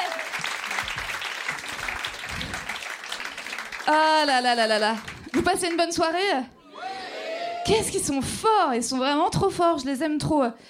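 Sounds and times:
audience applause: 0:00.0 - 0:06.0
speech: 0:03.9 - 0:06.6, 0:07.7 - 0:10.6.

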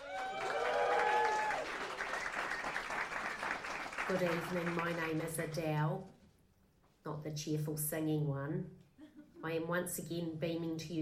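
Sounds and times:
applause: 0:00.0 - 0:05.5
speech: 0:04.1 - 0:06.2, 0:07.0 - 0:08.8, 0:09.4 - 0:10.9.

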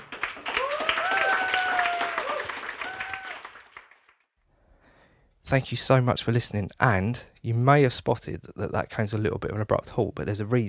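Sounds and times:
audience applauding: 0:00.0 - 0:04.3
whoops and cheers: 0:00.5 - 0:03.7
speech: 0:05.5 - 0:10.6.

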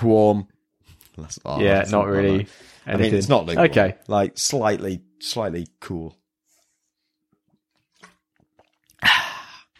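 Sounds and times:
speech: 0:00.0 - 0:00.5, 0:01.2 - 0:06.2
drinking water from a bottle: 0:08.0 - 0:09.7.

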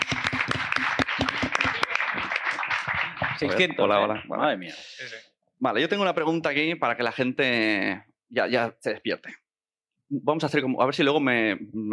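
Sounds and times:
short applause from audience: 0:00.0 - 0:03.8
speech: 0:03.4 - 0:09.4, 0:10.1 - 0:11.9.

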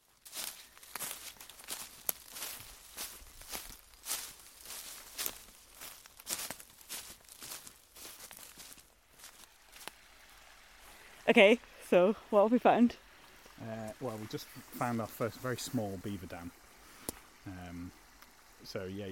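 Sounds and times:
footsteps through vegetation along a burn at dusk: 0:00.0 - 0:11.1, 0:13.2 - 0:17.4
speech: 0:11.3 - 0:13.0, 0:13.6 - 0:16.6, 0:18.6 - 0:19.1.

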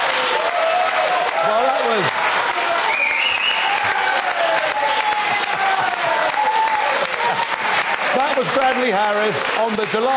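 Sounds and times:
faint cheering and whooping: 0:00.0 - 0:08.1
crowd applauding: 0:00.0 - 0:10.1
speech: 0:08.7 - 0:10.1.

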